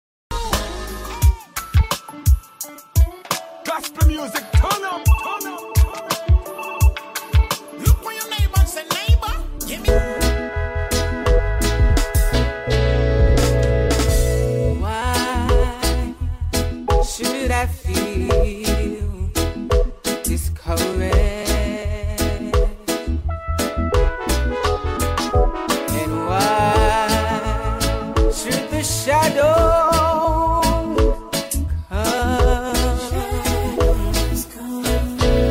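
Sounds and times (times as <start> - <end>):
inspirational reggae gospel music: 0.3 - 35.4.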